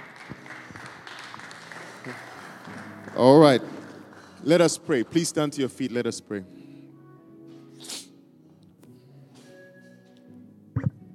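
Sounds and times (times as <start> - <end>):
audience clapping: 0.0 - 5.6
speech: 2.0 - 2.3, 3.2 - 3.7, 4.4 - 6.6.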